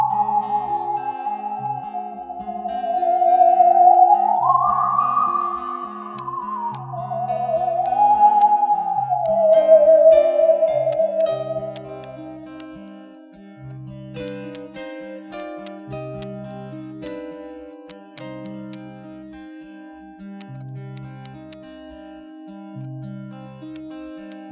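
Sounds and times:
theremin: 0:00.0 - 0:12.2.

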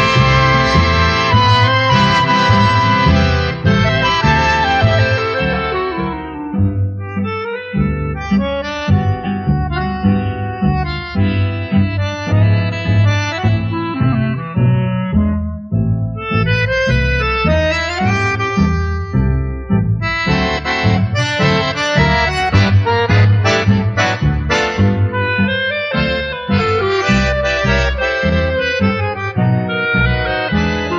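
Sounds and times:
instrumental quartet playing: 0:00.0 - 0:30.9.

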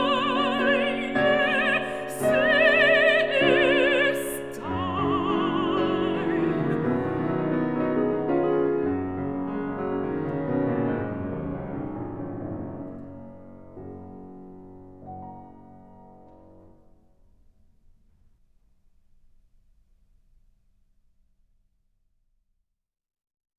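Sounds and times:
person singing: 0:00.0 - 0:07.5
piano: 0:00.0 - 0:19.9.

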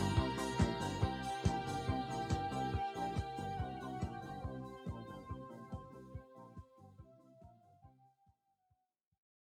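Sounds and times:
disco music: 0:00.0 - 0:07.5.

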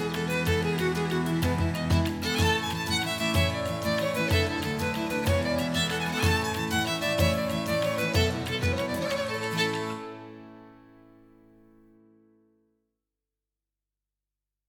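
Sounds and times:
Irish dance music: 0:00.0 - 0:10.0.

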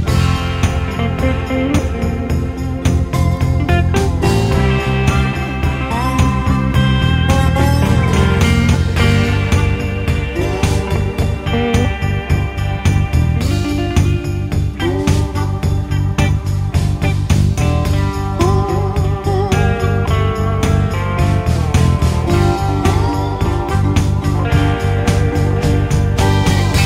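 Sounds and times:
piano break: 0:00.0 - 0:26.8.

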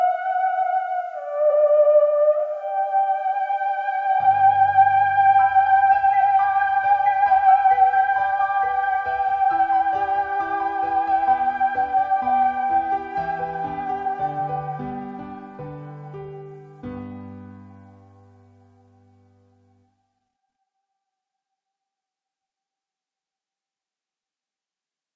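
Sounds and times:
theremin: 0:00.0 - 0:18.0.

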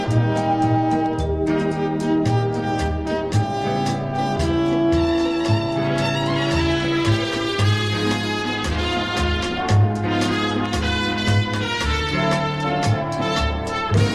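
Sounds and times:
strings with brass: 0:00.0 - 0:14.1.

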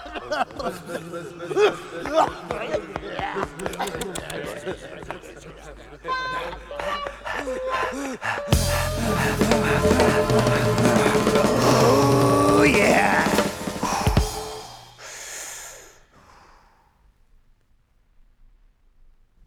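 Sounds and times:
laughter: 0:00.0 - 0:14.9
violin playing: 0:08.5 - 0:14.9.

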